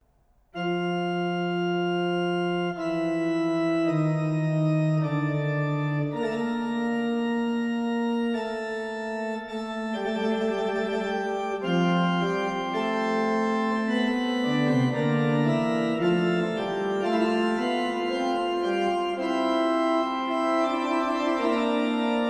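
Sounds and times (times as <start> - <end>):
fugue in F major: 0.6 - 22.2.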